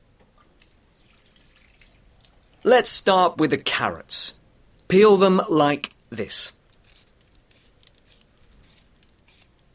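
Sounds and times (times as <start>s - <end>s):
water dripping: 0.3s - 3.8s, 4.4s - 5.0s
running tap water at a hand basin: 0.6s - 2.8s
speech: 2.6s - 6.6s.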